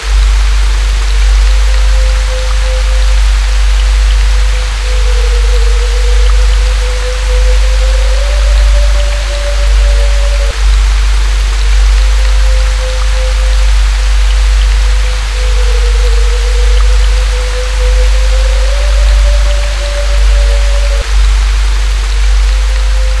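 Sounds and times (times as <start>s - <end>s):
haunted rain: 0.0s - 23.1s.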